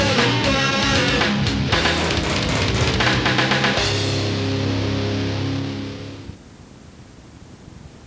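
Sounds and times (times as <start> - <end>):
synthesized vocal bass: 0.0 - 6.2.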